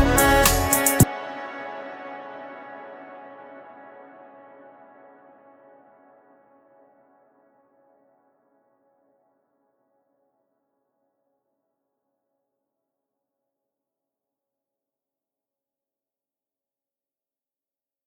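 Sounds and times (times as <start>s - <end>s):
sad music: 0.0s - 5.5s.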